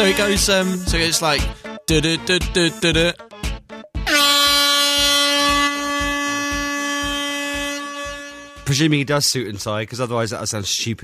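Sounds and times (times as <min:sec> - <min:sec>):
air horn blast: 0:00.0 - 0:01.3, 0:04.0 - 0:09.0
speech: 0:00.0 - 0:03.3, 0:08.7 - 0:11.0
low rhythmic thumping: 0:00.0 - 0:08.8.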